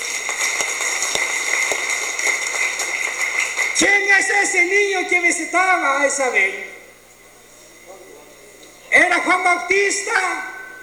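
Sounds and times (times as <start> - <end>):
audience applause: 0.0 - 4.1
speech: 3.8 - 6.7, 9.0 - 10.5.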